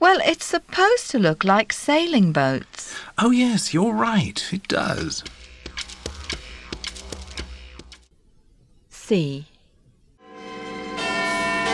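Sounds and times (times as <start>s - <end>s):
speech: 0.0s - 5.4s, 9.1s - 9.5s
large clock tower bell ringing: 10.2s - 11.7s.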